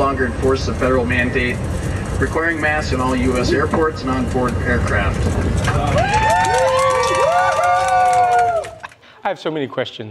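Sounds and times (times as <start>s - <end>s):
speech: 0.2s - 6.6s, 9.2s - 10.0s
crowd cheering: 5.6s - 9.0s
excited hubbub: 5.7s - 9.0s
voices whooping: 5.7s - 9.0s.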